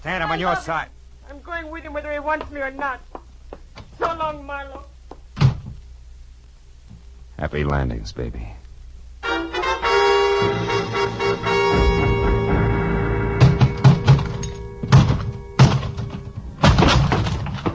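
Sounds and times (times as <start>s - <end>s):
speech: 0.0s - 3.2s, 4.0s - 4.9s, 7.4s - 8.6s
closet door being forced open: 5.4s - 5.8s, 13.4s - 17.7s
sustained ringing tone: 10.5s - 16.8s.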